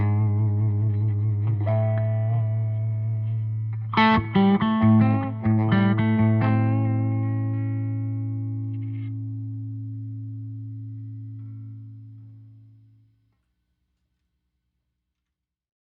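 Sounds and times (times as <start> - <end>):
Gibson Les Paul solid body electric guitar: 0.0 - 12.4.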